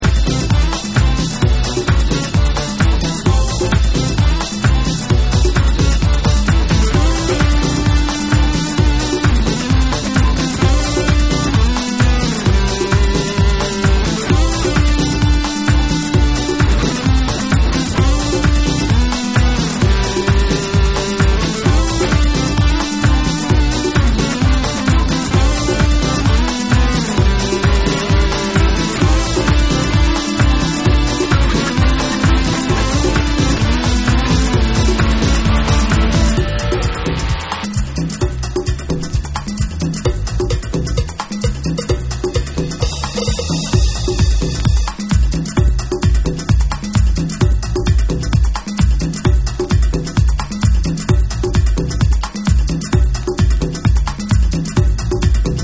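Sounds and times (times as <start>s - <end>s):
instrumental mix: 0.0s - 55.6s.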